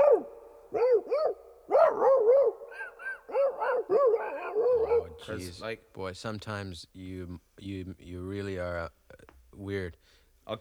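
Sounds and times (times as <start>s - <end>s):
dogs fighting, barking and yelping: 0.0s - 5.3s
speech: 5.2s - 9.0s, 9.6s - 10.5s.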